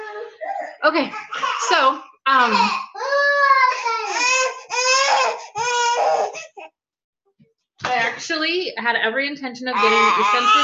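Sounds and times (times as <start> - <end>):
speech: 0.8 - 2.9, 8.2 - 10.6
child screaming and crying: 1.3 - 6.4, 9.7 - 10.6.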